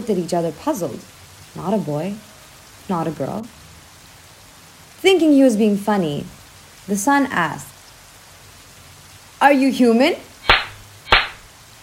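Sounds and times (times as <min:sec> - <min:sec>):
speech: 0:00.0 - 0:02.3, 0:02.9 - 0:03.6, 0:05.0 - 0:07.7, 0:09.4 - 0:10.3
sharp hand clap: 0:10.5 - 0:11.5.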